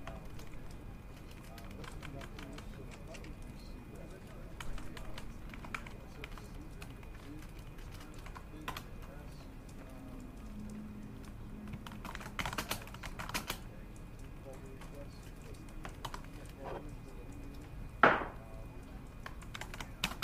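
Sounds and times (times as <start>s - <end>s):
keyboard clicks: 0.1s - 9.0s, 9.7s - 17.7s, 18.3s - 20.2s.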